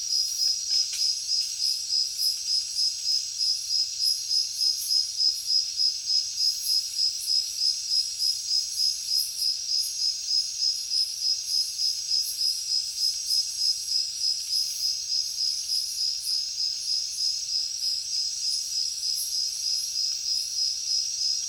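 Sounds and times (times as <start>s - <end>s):
crickets chirping in a jungle at night: 0.1s - 21.4s.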